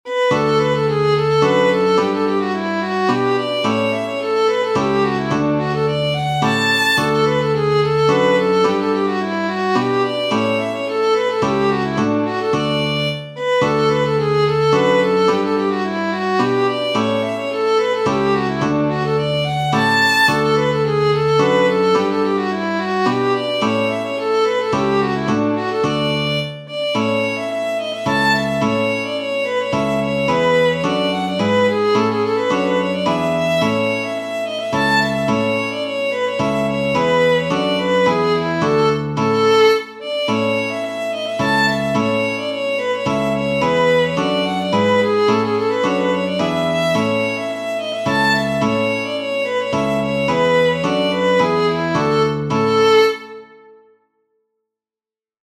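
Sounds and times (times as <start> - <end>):
atonal polska folk tune: 0.1 - 53.9.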